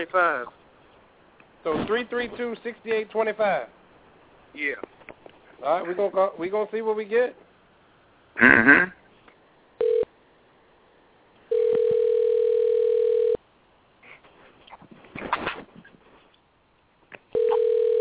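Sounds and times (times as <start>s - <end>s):
speech: 0.0s - 0.6s, 1.6s - 3.8s, 4.5s - 4.9s, 5.6s - 7.4s, 8.4s - 9.0s
telephone line ringing tone: 9.8s - 10.1s, 11.5s - 13.4s, 17.4s - 18.0s.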